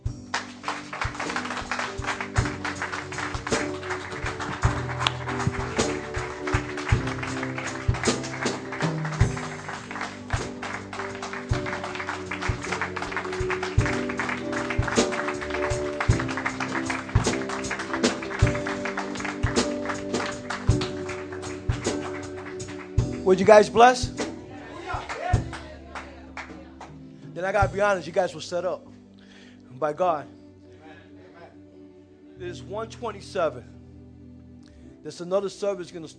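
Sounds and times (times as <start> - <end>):
audience clapping: 0.2 - 27.0
speech: 23.3 - 24.2, 27.4 - 28.9, 29.8 - 30.4, 32.6 - 33.7, 35.0 - 36.1.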